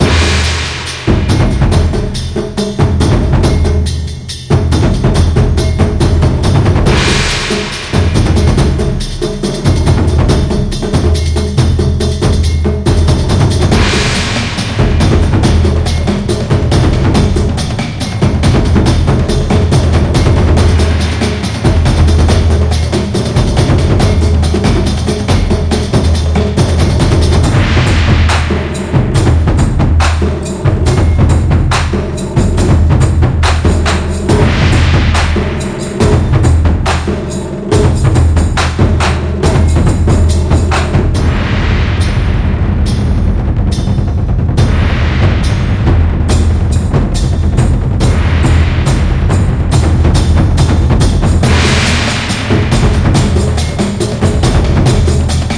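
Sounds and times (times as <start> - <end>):
drums: 0.0 - 55.5.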